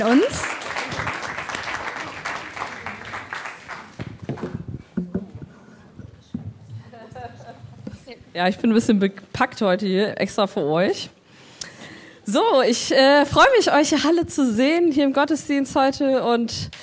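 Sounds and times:
speech: 0.0s - 0.6s, 8.4s - 11.2s, 12.3s - 16.8s
audience applause: 0.0s - 4.6s.

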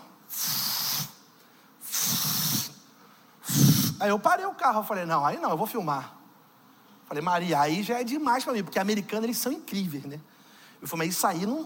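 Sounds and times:
person mimicking a pump sprayer's hiss with their mouth: 0.2s - 4.0s
speech: 4.0s - 6.2s, 7.1s - 11.6s.

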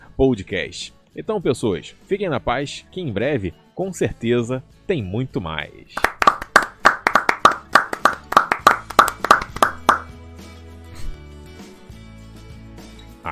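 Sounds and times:
speech: 0.2s - 6.1s
clapping applause: 6.0s - 10.1s.

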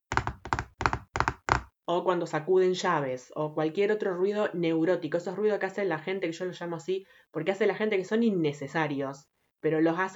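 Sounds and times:
fingers drumming on a table: 0.0s - 1.7s
speech: 1.9s - 10.1s.

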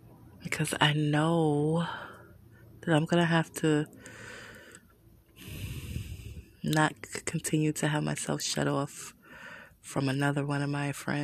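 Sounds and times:
speech: 0.5s - 2.1s, 2.8s - 4.3s, 6.6s - 9.2s, 9.8s - 11.2s
person taking a deep breath: 4.0s - 6.6s, 9.2s - 9.8s.

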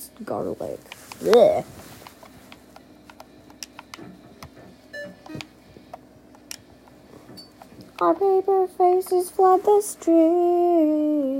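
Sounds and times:
speech: 0.2s - 1.9s, 8.0s - 11.3s
checkout scanner beep: 4.9s - 5.6s.

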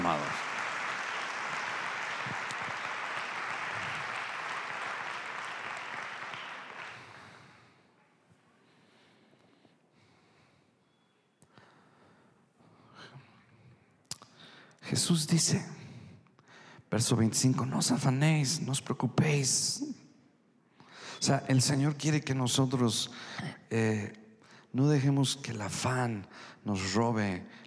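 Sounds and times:
audience applause: 0.0s - 7.6s
speech: 15.0s - 15.8s, 17.0s - 20.0s, 21.2s - 27.6s.

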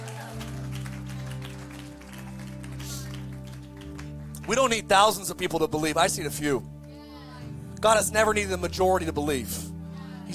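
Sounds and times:
clapping in the back: 0.0s - 4.8s
speech: 4.5s - 6.7s, 7.8s - 9.7s.

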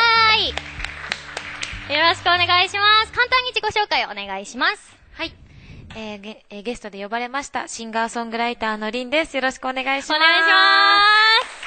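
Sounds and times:
applause welcoming a guest: 0.0s - 3.2s, 11.2s - 11.6s
speech: 2.2s - 5.4s, 6.0s - 11.1s.

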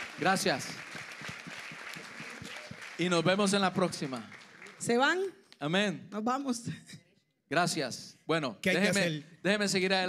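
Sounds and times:
audience applause: 0.0s - 5.2s
speech: 0.2s - 0.9s, 3.0s - 6.9s, 7.5s - 10.0s.

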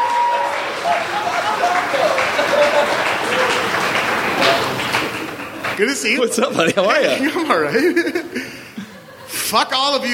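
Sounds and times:
audience clapping: 0.0s - 6.3s
laughter: 0.8s - 10.1s
speech: 5.8s - 8.6s, 9.5s - 10.1s.

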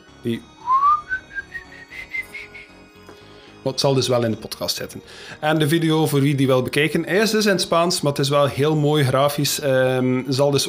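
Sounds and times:
speech: 0.2s - 0.5s, 3.6s - 10.6s
eerie whistled tune: 0.6s - 2.9s.

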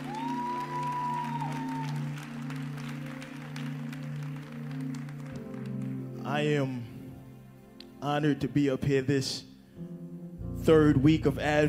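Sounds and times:
audience hand clapping: 0.0s - 6.3s
speech: 6.3s - 6.9s, 8.0s - 9.5s, 10.6s - 11.6s.

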